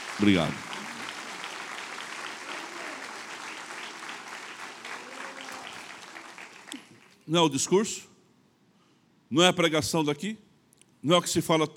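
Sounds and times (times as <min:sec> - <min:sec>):
audience applauding: 0:00.0 - 0:07.2
speech: 0:00.2 - 0:00.7, 0:07.3 - 0:08.1, 0:09.3 - 0:10.4, 0:11.0 - 0:11.7.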